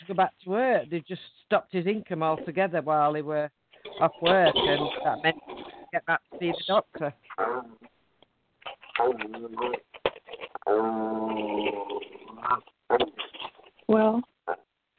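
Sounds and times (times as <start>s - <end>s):
speech: 0.1s - 7.9s, 9.0s - 10.0s, 10.7s - 13.3s, 13.9s - 14.6s
small dog making noises: 8.6s - 10.7s, 11.3s - 14.7s.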